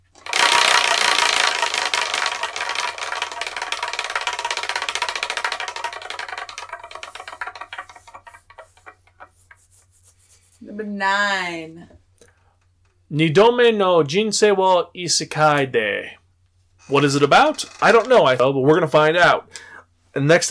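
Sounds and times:
Wheel of Fortune style prize wheel with 10 slots spinning: 0.0 - 9.2, 16.8 - 18.4
speech: 10.9 - 12.0, 13.1 - 16.2, 16.9 - 20.4.

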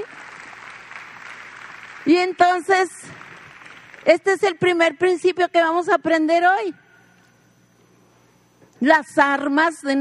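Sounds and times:
audience applause: 0.0 - 4.1
speech: 2.0 - 3.3, 4.0 - 6.8, 8.8 - 9.9.

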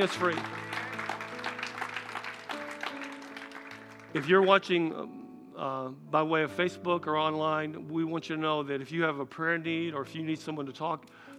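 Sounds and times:
speech: 0.0 - 0.6, 4.1 - 11.3
audience hand clapping: 0.0 - 4.7.

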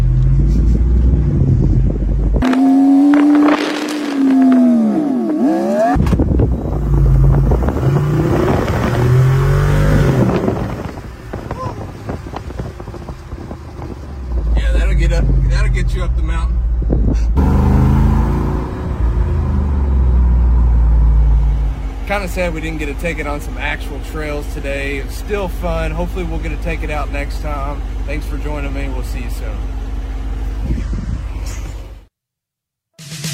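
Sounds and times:
car engine drone with hard top off: 0.0 - 32.1
wind buffeting microphone: 0.3 - 5.0, 5.9 - 16.0, 16.6 - 17.4, 30.5 - 31.5
speech: 22.4 - 29.8.

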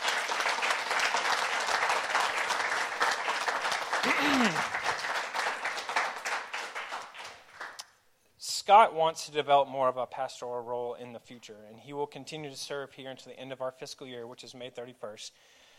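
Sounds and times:
round of applause: 0.0 - 7.8
speech: 4.0 - 4.8, 8.7 - 15.6.

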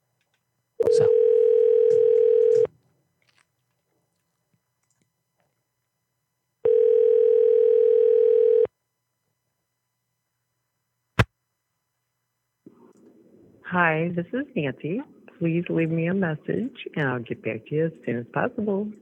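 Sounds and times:
telephone ringback tone of an outgoing call: 0.8 - 2.7, 6.7 - 8.7
sharp click as the line picks up: 1.6 - 2.7
speech: 13.7 - 18.9.

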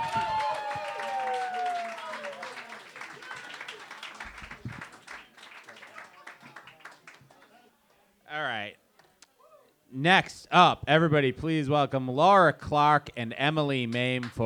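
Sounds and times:
audience applause at a comedy show: 0.0 - 7.5, 13.9 - 14.4
speech: 10.0 - 14.4.

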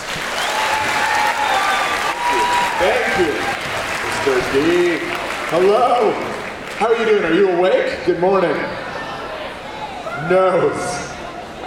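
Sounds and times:
audience applause welcoming a guest speaker: 0.0 - 7.6
speech: 2.8 - 3.6, 4.2 - 8.8, 10.3 - 11.0.

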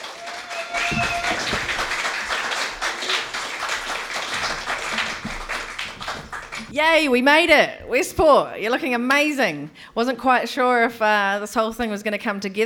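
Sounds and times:
audience applause: 0.0 - 6.7
speech: 6.8 - 12.6.

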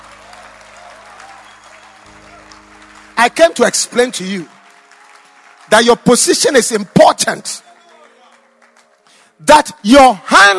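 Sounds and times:
audience applause: 0.0 - 9.2
speech: 3.2 - 4.6, 5.7 - 7.7, 9.4 - 10.5.

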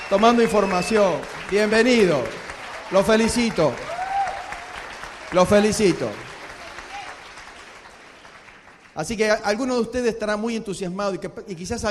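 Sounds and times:
audience applause at a Spanish-language education convention: 0.0 - 9.2
speech: 0.1 - 3.9, 5.3 - 6.3, 9.0 - 11.8.

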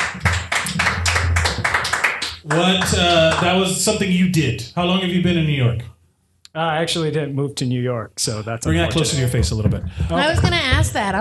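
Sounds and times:
applause: 0.0 - 3.7
speech: 2.5 - 5.9, 6.6 - 11.1.

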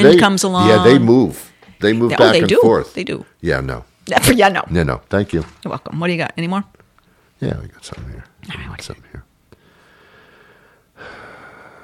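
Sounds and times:
speech: 0.0 - 6.8, 7.4 - 9.2
heavy breathing: 9.5 - 11.8.

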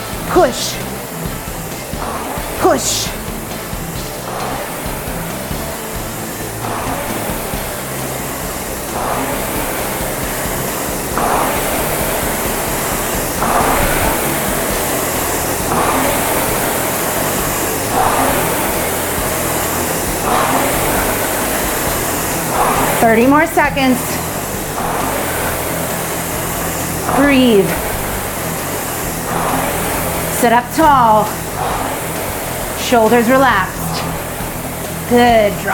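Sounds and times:
rowing machine flywheel spinning: 0.0 - 35.7
speech: 0.3 - 0.9, 2.6 - 3.2, 23.0 - 24.1, 27.2 - 27.8, 30.4 - 31.4, 32.9 - 33.8, 35.1 - 35.7.

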